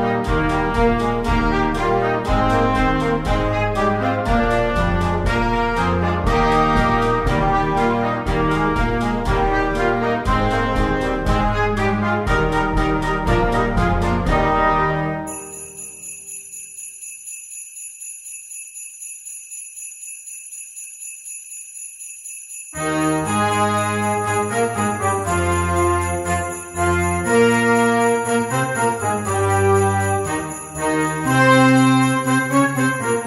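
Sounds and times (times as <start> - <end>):
band playing a march: 0.0 - 15.3, 22.8 - 33.2.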